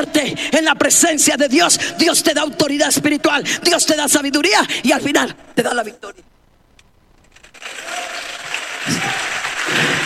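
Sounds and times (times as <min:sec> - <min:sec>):
speech: 0:00.0 - 0:06.3
audience clapping: 0:07.4 - 0:10.0.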